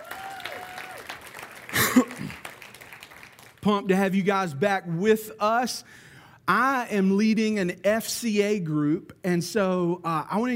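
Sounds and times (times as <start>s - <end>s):
audience applause welcoming back UMO students: 0.0s - 3.9s
speech: 3.6s - 10.5s.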